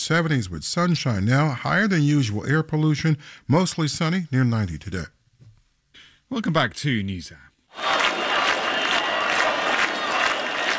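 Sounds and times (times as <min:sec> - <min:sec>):
speech: 0:00.0 - 0:05.2, 0:06.3 - 0:08.0
crowd roaring at a night-time protest in Albania: 0:07.7 - 0:10.7.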